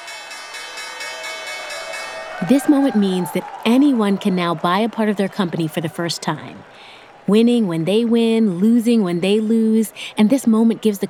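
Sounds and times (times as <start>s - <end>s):
New York Stock Exchange opening bell: 0.0s - 2.7s
speech: 2.4s - 11.0s.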